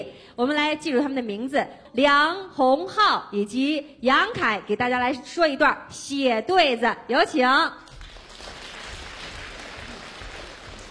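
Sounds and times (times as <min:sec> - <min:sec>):
speech: 0:00.0 - 0:07.8
audience applause: 0:07.9 - 0:10.8.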